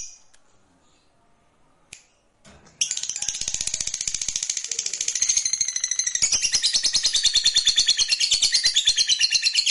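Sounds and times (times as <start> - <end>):
fighter-type lovebird giving a long rattling trill: 2.8 - 9.5.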